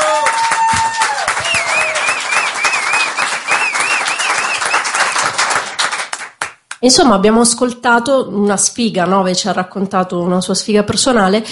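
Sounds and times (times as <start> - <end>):
audience applause: 0.0 - 6.6
speech: 6.8 - 11.5.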